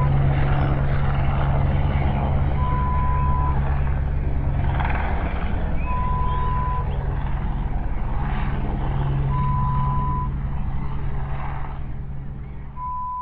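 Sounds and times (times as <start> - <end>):
helicopter passing: 0.0 - 13.1.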